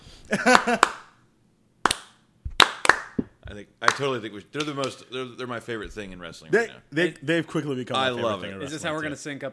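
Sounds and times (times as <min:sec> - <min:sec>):
speech: 0:00.3 - 0:01.0, 0:03.6 - 0:09.5
rhythmic hand clap: 0:00.4 - 0:01.2, 0:01.8 - 0:05.0.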